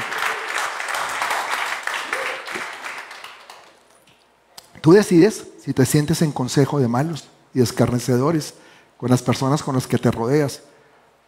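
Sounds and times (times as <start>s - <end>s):
audience applause: 0.0s - 3.9s
speech: 4.8s - 10.7s.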